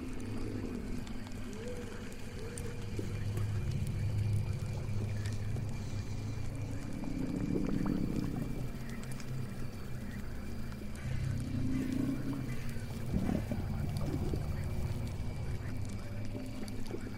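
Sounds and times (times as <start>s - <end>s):
bubbling and gurgling: 0.0s - 17.1s
murky low rumble of a witch's swamp house: 3.0s - 16.9s.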